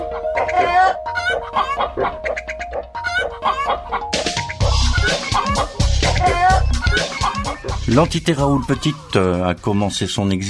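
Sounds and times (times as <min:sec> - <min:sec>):
chickens clucking as they come when called: 0:00.0 - 0:08.1
speech: 0:07.9 - 0:10.4.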